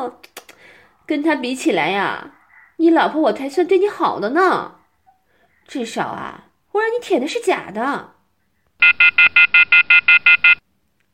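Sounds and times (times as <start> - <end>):
speech: 0.0 - 0.3, 1.1 - 4.8, 5.7 - 8.1, 8.8 - 10.6
sex toy device alarm beeping: 8.8 - 10.6.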